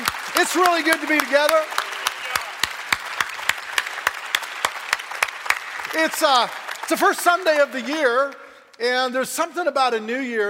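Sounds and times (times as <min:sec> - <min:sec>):
audience applause: 0:00.0 - 0:08.4
speech: 0:00.4 - 0:01.8, 0:06.0 - 0:10.4.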